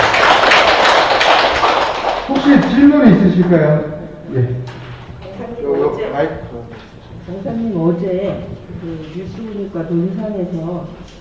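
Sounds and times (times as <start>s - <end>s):
crowd clapping: 0.0s - 3.5s
speech: 2.5s - 4.8s, 5.7s - 11.1s.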